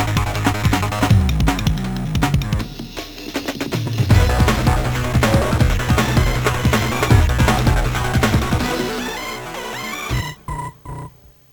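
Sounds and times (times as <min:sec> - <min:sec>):
music intro: 0:00.0 - 0:02.6, 0:04.1 - 0:10.7.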